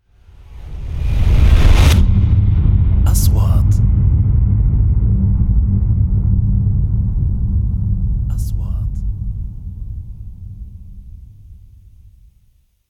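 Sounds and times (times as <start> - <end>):
3D trailer sound effects: 0.2 - 12.2.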